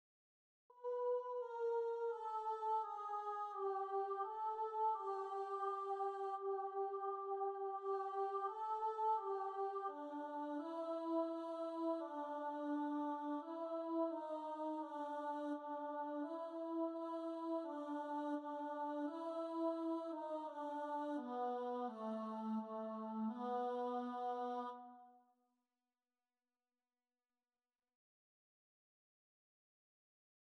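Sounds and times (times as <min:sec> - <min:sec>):
choir singing: 0:00.8 - 0:24.8.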